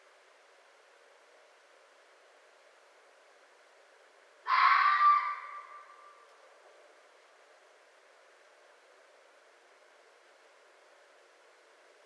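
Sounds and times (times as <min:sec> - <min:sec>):
red fox screaming: 0:04.5 - 0:06.2.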